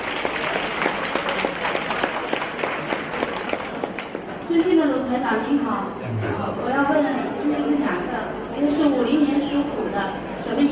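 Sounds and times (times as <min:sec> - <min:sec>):
crowd applauding: 0:00.0 - 0:04.3
speech: 0:05.3 - 0:10.7.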